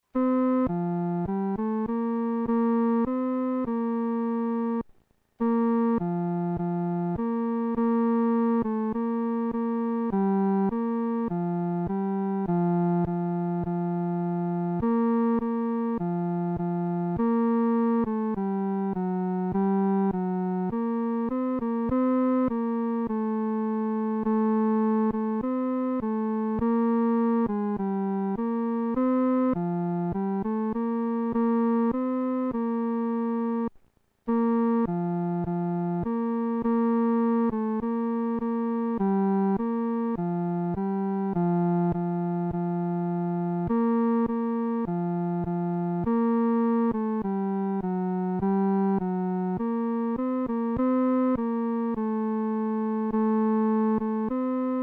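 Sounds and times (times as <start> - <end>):
solo music third voice: 0.0 - 54.8.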